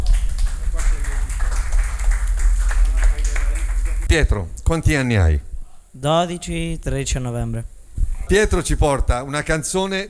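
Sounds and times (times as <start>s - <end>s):
audience applause: 0.1s - 4.0s
speech: 4.1s - 7.7s, 8.3s - 10.0s.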